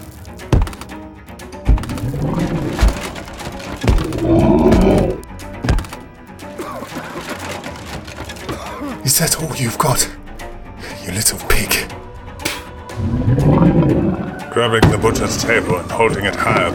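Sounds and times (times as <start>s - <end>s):
heavy thuds and crunching crashes: 0.5s - 0.9s, 1.6s - 6.2s
low growling rumble: 1.9s - 5.3s, 12.0s - 14.6s
creature's deep hearty bellowing roar: 4.0s - 5.2s
speech: 9.2s - 10.2s, 11.2s - 12.1s, 14.6s - 16.7s.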